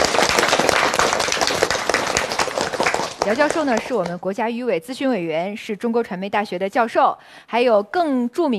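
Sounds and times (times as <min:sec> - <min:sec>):
crowd applause welcoming a guest: 0:00.0 - 0:04.1
speech: 0:03.3 - 0:08.5.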